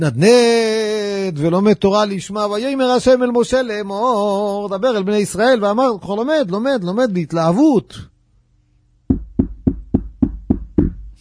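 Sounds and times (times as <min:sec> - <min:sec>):
speech: 0:00.0 - 0:08.1
knocking on a door: 0:09.1 - 0:11.2.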